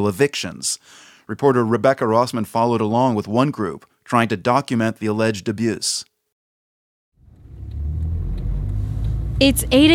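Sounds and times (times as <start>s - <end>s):
speech: 0.0s - 6.1s, 9.4s - 9.9s
car engine outside the police headquarters in Calais: 7.2s - 9.9s.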